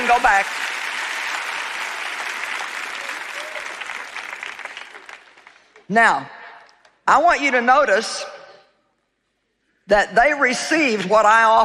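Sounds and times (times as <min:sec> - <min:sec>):
audience clapping: 0:00.0 - 0:05.9
speech: 0:00.1 - 0:00.8, 0:05.9 - 0:06.4, 0:07.1 - 0:08.4, 0:09.9 - 0:11.6.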